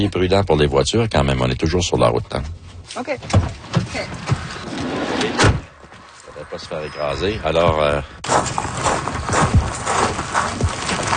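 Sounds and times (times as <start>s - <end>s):
speech: 0.0s - 5.6s, 6.4s - 9.2s
rocks falling: 8.2s - 11.1s.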